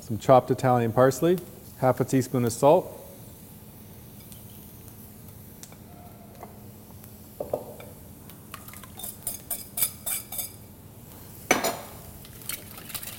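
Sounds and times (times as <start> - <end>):
speech: 0.1 - 3.0
whisk clinking while whisking eggs with Parmesan and parsley: 8.6 - 10.6.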